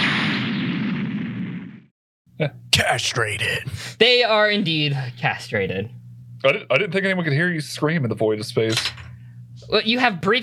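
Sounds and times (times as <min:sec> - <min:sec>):
rumbling explosion: 0:00.0 - 0:01.9
short sharp burst: 0:00.0 - 0:01.9
speech: 0:02.4 - 0:09.0, 0:09.6 - 0:10.4.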